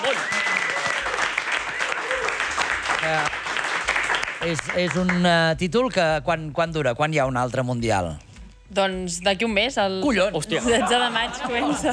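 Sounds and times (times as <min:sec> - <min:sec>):
audience applause: 0:00.0 - 0:05.3
speech: 0:03.0 - 0:03.4, 0:04.4 - 0:11.9
laughter: 0:10.5 - 0:11.9.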